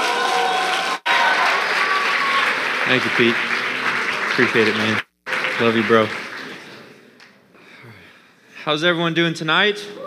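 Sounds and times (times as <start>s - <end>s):
audience applause welcoming a speaker at a Chi Alpha University of Virginia gathering: 0.0s - 6.9s
speech: 2.9s - 3.5s, 4.4s - 5.0s, 5.6s - 6.2s, 8.6s - 10.0s.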